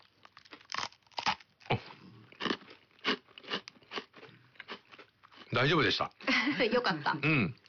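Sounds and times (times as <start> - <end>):
crisp crunching of a simple traditional Japanese sweet being chewed: 0.0 - 4.1
speech: 5.5 - 7.6.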